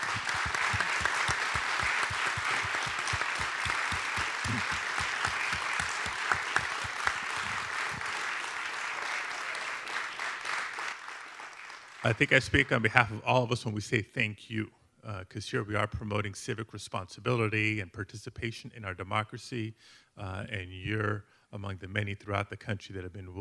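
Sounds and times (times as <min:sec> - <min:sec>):
audience applause: 0:00.0 - 0:12.8
speech: 0:12.0 - 0:23.4.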